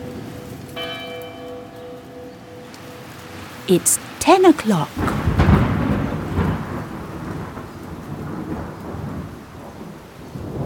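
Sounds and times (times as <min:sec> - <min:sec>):
steady rain: 0:00.0 - 0:10.6
speech: 0:03.7 - 0:05.3
deep rolling thunder: 0:05.0 - 0:10.6.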